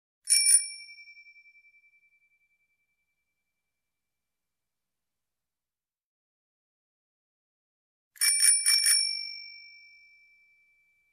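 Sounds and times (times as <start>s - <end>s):
bicycle bell ringing: 0.3s - 1.8s, 8.2s - 11.1s.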